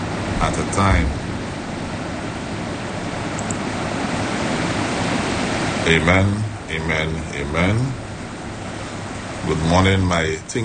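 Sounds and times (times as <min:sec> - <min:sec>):
heavy rain: 0:00.0 - 0:10.6
speech: 0:00.4 - 0:01.2, 0:05.9 - 0:08.0, 0:09.4 - 0:10.6.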